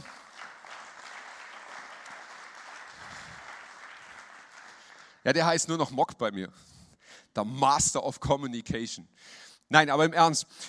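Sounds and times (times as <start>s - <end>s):
audience applause: 0.0s - 5.2s
speech: 5.2s - 6.8s, 7.4s - 10.6s.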